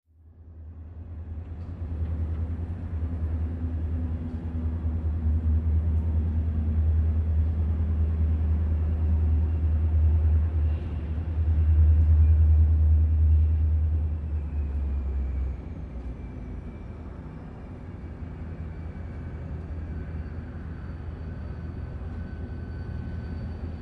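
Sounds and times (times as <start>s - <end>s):
train passing through underpass: 0.2s - 23.7s.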